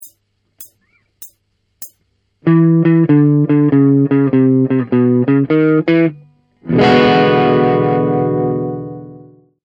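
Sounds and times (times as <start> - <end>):
blues music: 2.4 - 9.2.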